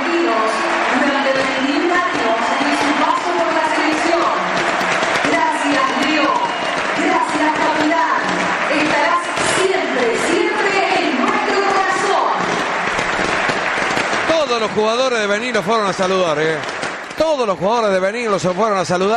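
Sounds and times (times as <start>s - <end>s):
huge stadium crowd standing ovation, roaring and applauding: 0.0s - 19.1s
speech: 14.6s - 19.1s.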